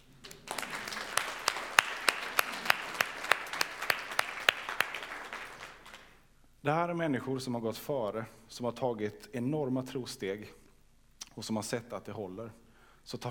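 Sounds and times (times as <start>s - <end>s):
audience applause: 0.0s - 6.2s
speech: 6.6s - 10.6s, 11.4s - 13.2s.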